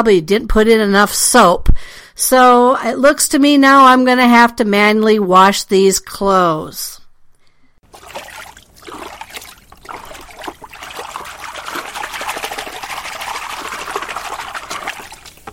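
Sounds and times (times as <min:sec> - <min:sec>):
speech: 0:00.0 - 0:07.0
water sloshing and trickling inside a washing machine with its lid open: 0:07.8 - 0:15.5.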